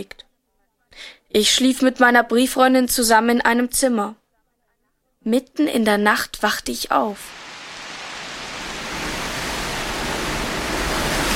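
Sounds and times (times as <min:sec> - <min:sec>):
speech: 0:00.0 - 0:00.2, 0:01.0 - 0:04.2, 0:05.2 - 0:07.4
storm wind roaring: 0:07.2 - 0:11.3.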